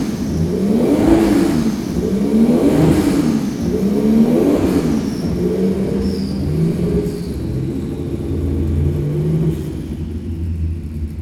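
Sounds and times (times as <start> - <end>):
Porsche 935-78 car: 0.0 - 11.1.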